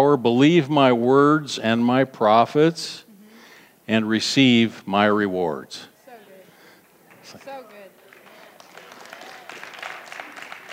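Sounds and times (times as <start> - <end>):
speech: 0.0 - 3.0, 3.9 - 5.9
audience hand clapping: 6.8 - 10.7.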